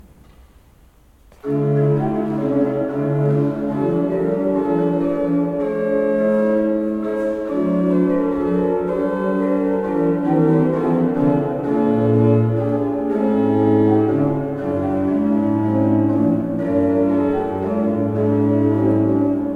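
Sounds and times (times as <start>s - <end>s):
pipe organs: 1.0s - 19.5s.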